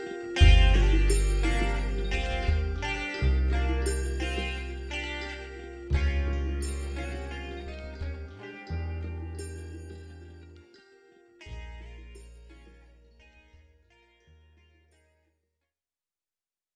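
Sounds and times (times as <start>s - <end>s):
dub music: 0.0s - 10.4s.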